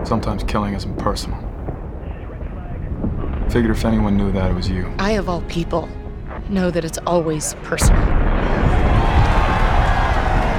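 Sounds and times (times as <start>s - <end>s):
speech: 0.0s - 1.5s, 3.5s - 8.7s
group of people cheering at an avalanche rolling down mountains: 8.4s - 10.5s.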